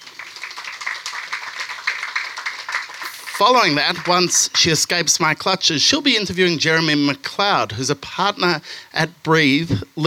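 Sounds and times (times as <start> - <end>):
audience applause: 0.0 - 5.2
speech: 3.4 - 10.0.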